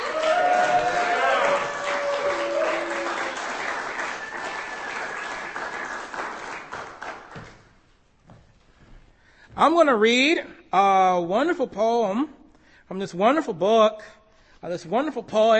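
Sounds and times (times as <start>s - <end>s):
audience applause at a poetry reading: 0.0s - 7.5s
speech: 9.6s - 15.5s.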